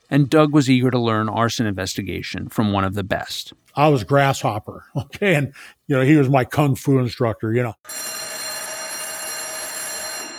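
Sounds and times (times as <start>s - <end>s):
speech: 0.1s - 8.2s
alarm bell ringing: 7.8s - 10.3s.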